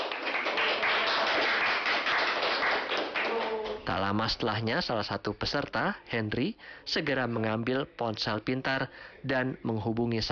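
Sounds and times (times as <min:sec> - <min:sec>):
crowd applause: 0:00.0 - 0:03.9
speech: 0:04.0 - 0:10.2.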